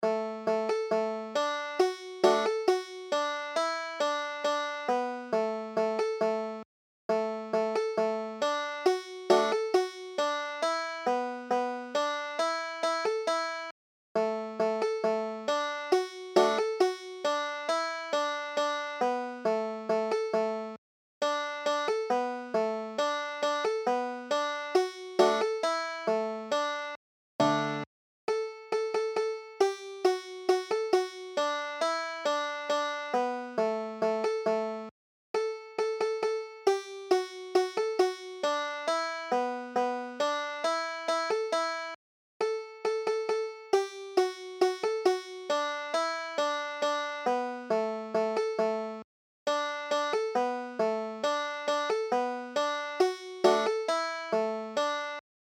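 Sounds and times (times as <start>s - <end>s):
banjo: 0.0s - 55.2s.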